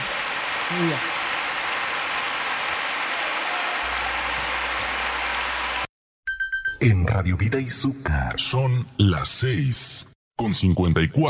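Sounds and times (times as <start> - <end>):
audience applause: 0.0 - 5.9
speech: 0.7 - 1.1, 6.8 - 11.2.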